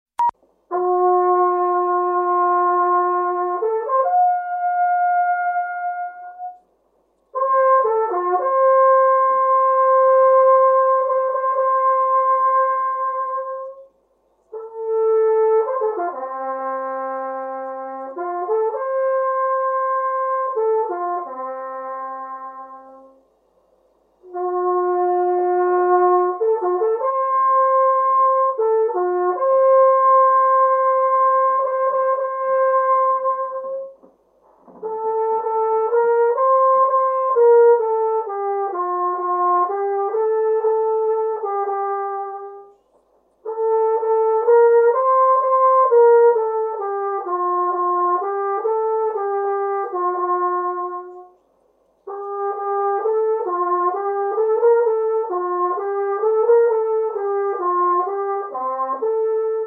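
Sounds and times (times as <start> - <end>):
trumpet signal: 0.2 - 59.6.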